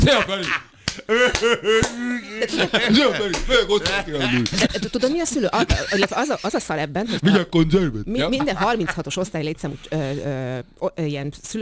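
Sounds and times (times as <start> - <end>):
hand slapping forehead: 0.0 - 5.8
laughter: 0.0 - 10.6
speech: 0.0 - 11.6.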